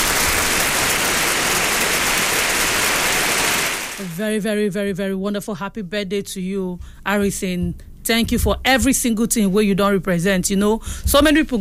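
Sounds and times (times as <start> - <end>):
crowd clapping: 0.0 - 4.0
speech: 4.2 - 11.5.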